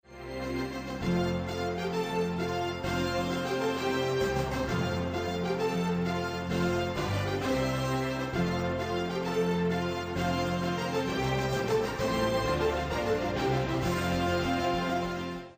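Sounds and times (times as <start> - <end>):
anthem music: 0.1 - 15.5.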